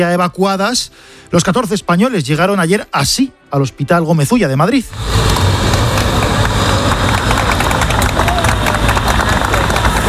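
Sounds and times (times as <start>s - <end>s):
speech: 0.0s - 5.6s
traffic noise: 4.9s - 10.0s
crowd applauding outdoors outside a hospital: 5.0s - 10.0s
cheering: 5.7s - 10.0s.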